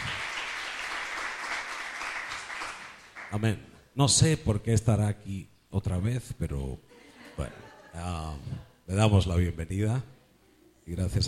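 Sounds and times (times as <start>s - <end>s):
audience welcome applause: 0.0s - 3.4s
speech: 3.3s - 10.2s, 10.9s - 11.2s
laughter: 6.9s - 8.6s.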